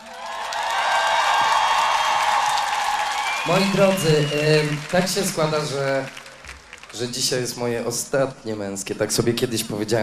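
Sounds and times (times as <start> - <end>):
big crowd applause: 0.0 - 7.3
speech: 3.4 - 6.2, 6.9 - 10.0.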